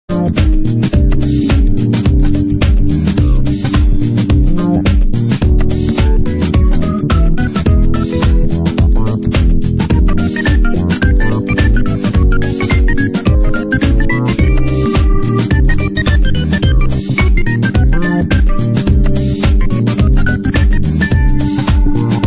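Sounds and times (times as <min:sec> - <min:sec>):
modern fusion music: 0:00.1 - 0:22.2.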